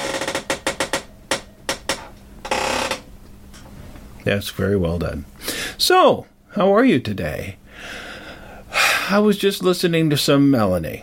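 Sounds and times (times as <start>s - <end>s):
squeaky chair creaking: 0.0s - 3.8s
speech: 4.2s - 8.0s, 9.1s - 11.0s.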